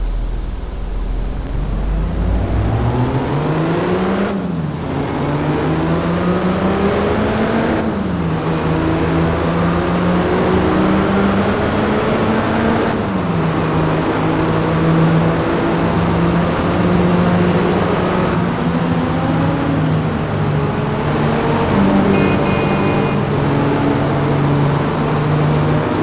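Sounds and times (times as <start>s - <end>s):
1990 Rolls-Royce Silver Spirit engine: 0.0s - 26.0s.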